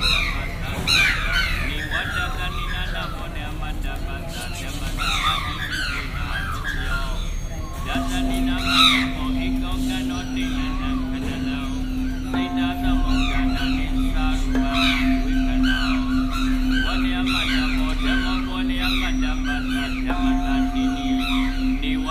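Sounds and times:
bright bird-like chirps: 0.0 - 22.1
crowd of voices murmuring at Shwedagon Pagoda in Yangon: 0.0 - 22.1
steady low ringing tone like a struck bowl or bell: 5.0 - 22.1.

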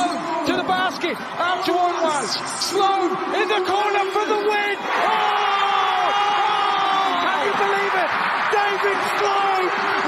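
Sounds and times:
basketball arena crowd cheering wildly at buzzer-beater: 0.0 - 10.0
speech: 1.0 - 5.0.

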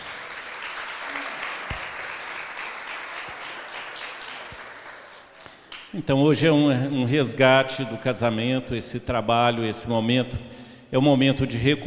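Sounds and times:
audience applauding the couples: 0.0 - 5.9
speech: 6.0 - 11.8.

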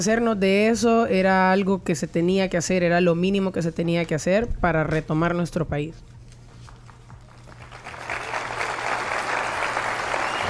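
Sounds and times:
speech: 0.0 - 6.1
audience applause in played speech: 6.9 - 10.4.

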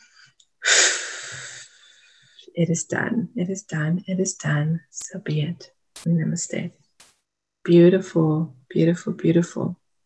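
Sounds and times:
deep breath during a guided meditation: 1.1 - 2.5
speech: 2.6 - 6.8, 7.7 - 9.8.

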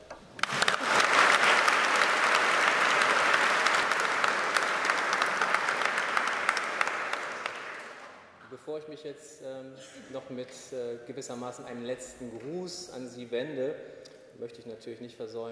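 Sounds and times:
audience applause: 0.4 - 8.4
speech: 8.8 - 15.5.

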